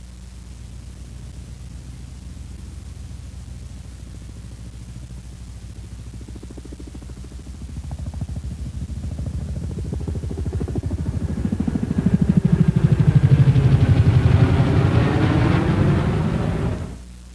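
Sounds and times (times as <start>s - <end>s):
CH-47C Chinook helicopter twin rotors beating: 5.7s - 17.1s.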